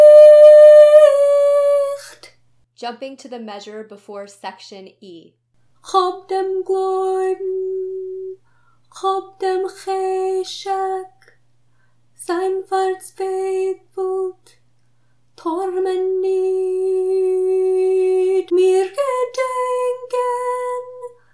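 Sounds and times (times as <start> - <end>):
soprano singing without piano: 0.0 - 2.3, 5.9 - 8.4, 9.0 - 11.2, 12.2 - 14.4, 15.4 - 21.2.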